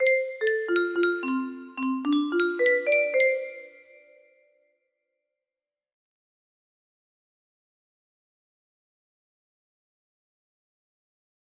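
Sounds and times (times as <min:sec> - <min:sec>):
music box: 0:00.0 - 0:04.2.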